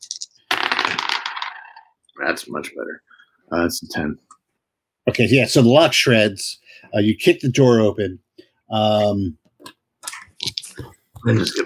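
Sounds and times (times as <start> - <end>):
dice rolling: 0.0 - 2.0
speech: 2.2 - 4.4, 5.0 - 9.8, 11.2 - 11.6.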